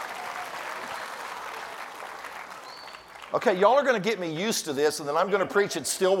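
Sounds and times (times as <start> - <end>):
crowd clapping: 0.0 - 4.2
speech: 3.3 - 6.1.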